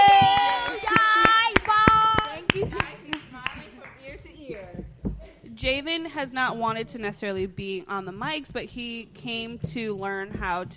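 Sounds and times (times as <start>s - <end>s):
round of applause: 0.0s - 3.9s
speech: 5.6s - 10.7s.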